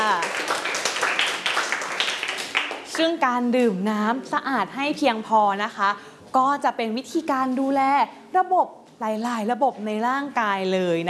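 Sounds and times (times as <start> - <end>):
classroom children clapping for a classmate: 0.0 - 3.0
speech: 3.0 - 11.0.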